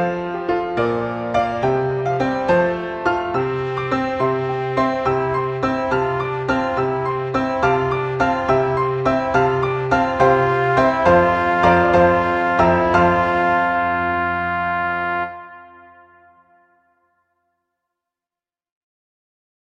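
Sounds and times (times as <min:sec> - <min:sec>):
gigue: 0:01.0 - 0:16.6.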